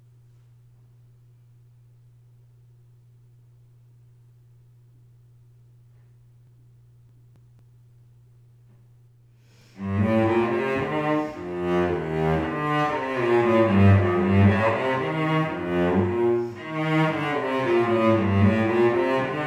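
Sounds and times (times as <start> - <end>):
cello: 9.7 - 19.4.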